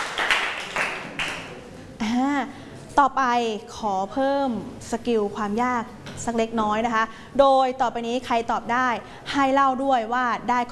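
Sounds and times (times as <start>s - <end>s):
students clapping for a classmate in a classroom: 0.0s - 1.6s
speech: 3.0s - 10.7s.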